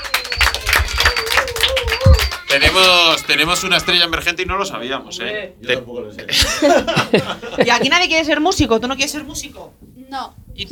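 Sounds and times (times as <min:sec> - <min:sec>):
audience clapping: 0:00.0 - 0:03.5
speech: 0:02.5 - 0:10.7
laughter: 0:06.3 - 0:08.1.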